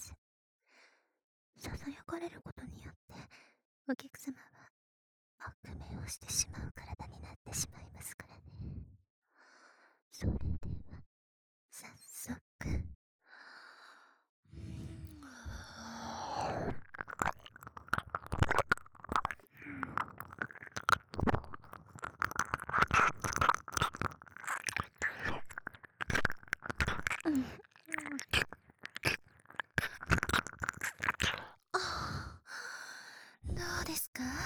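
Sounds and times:
whispering in the ear: 1.6 - 3.3, 3.9 - 4.7, 5.4 - 8.8, 11.8 - 12.9, 14.6 - 21.1, 21.8 - 31.6, 33.4 - 34.4
ear licking: 16.4 - 31.8.

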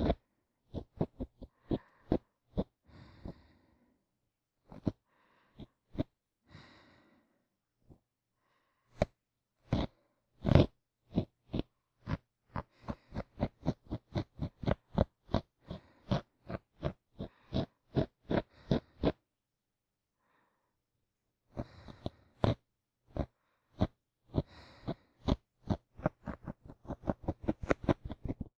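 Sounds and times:
ear cleaning sounds on the left: 0.0 - 3.4, 4.7 - 5.0, 9.0 - 19.2, 21.5 - 28.5
sleeping breath for restful sleep: 0.1 - 4.0, 4.7 - 19.2, 21.5 - 28.4.

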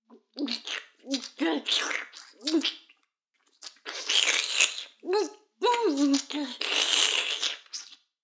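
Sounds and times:
oral sex sounds: 0.1 - 8.0.

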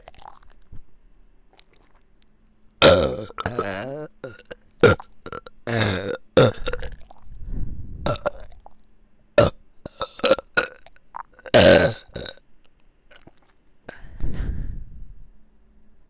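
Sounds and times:
burping in both ears: 2.8 - 7.1, 8.1 - 8.6, 9.4 - 12.4.

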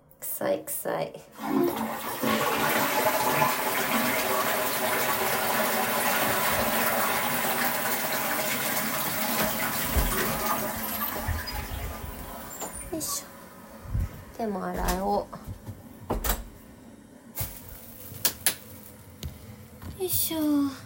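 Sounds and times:
speech: 0.4 - 2.3, 14.4 - 15.4, 20.1 - 20.8
toilet flushing: 1.3 - 13.8.

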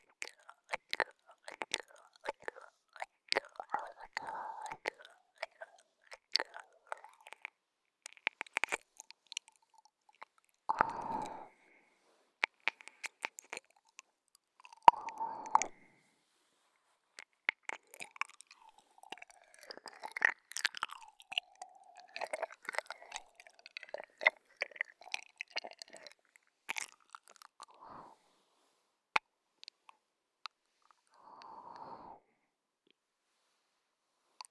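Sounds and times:
ASMR ear licking: 0.0 - 11.6, 12.4 - 15.8, 17.2 - 27.7.

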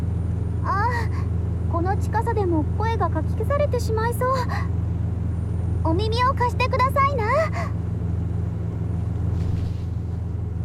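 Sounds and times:
strong wind: 0.0 - 10.6
speech: 2.0 - 4.9, 5.8 - 7.8
motorboat engine rumbling: 8.1 - 10.6.

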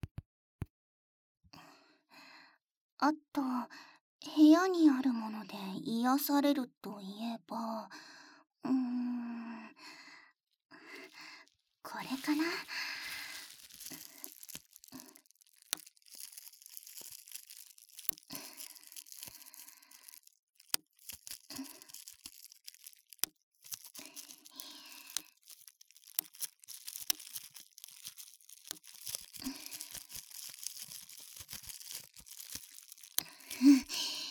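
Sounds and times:
speech: 3.0 - 10.0, 11.9 - 12.9
bubble wrap packing material being popped: 11.0 - 34.2.

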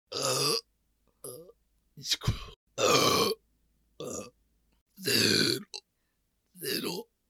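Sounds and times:
burping: 0.1 - 1.6, 2.8 - 3.4, 4.0 - 4.4, 5.0 - 5.9, 6.6 - 7.1.

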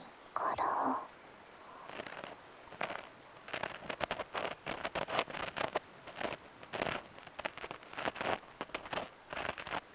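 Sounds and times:
ear cleaning of the right ear on a boat on a clear stream: 1.7 - 9.9.

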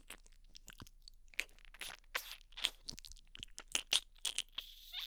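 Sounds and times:
sucking and licking behind the ear ASMR: 1.4 - 3.0, 3.7 - 5.0.

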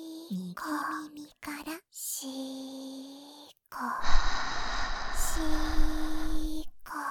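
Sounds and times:
speech: 0.3 - 2.5, 5.4 - 5.8
breathing close to the ear: 4.0 - 6.9.

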